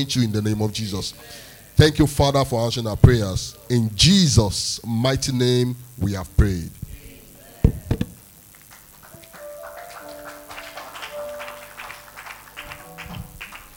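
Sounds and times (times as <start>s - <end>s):
speech: 0.0s - 6.8s
sharp knocks: 7.7s - 8.2s
audience clapping: 8.5s - 13.7s.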